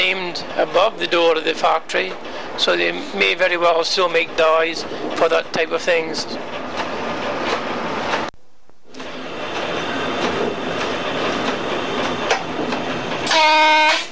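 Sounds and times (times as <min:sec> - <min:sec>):
train rumbling, slowing toward a signal: 0:00.0 - 0:08.3, 0:08.9 - 0:14.1
speech: 0:00.4 - 0:06.8
horn-like tone with stacked harmonics: 0:13.3 - 0:14.1.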